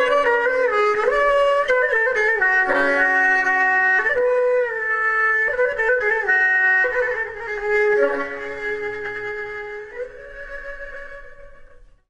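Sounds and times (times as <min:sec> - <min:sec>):
fiddle: 0:00.0 - 0:11.9
kamancheh: 0:00.0 - 0:12.0.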